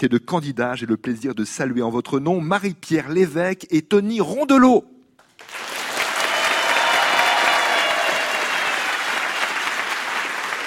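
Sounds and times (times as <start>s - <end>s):
speech: 0.0s - 5.6s
warm audience applause: 5.4s - 10.6s.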